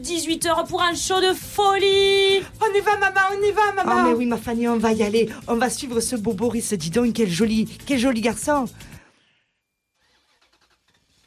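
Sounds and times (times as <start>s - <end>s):
speech: 0.0s - 9.0s
Renault 4L car engine starting: 10.0s - 11.2s.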